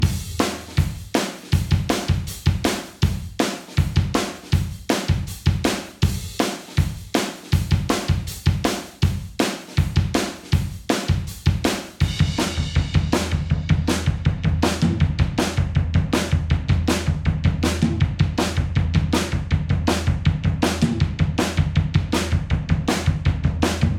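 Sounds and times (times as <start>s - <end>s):
full drum intro: 0.0s - 23.9s.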